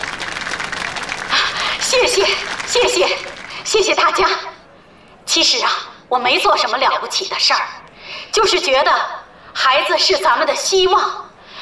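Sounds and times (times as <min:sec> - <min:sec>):
crowd clapping to welcome a speaker: 0:00.0 - 0:04.3
speech: 0:02.0 - 0:04.5, 0:05.3 - 0:11.2.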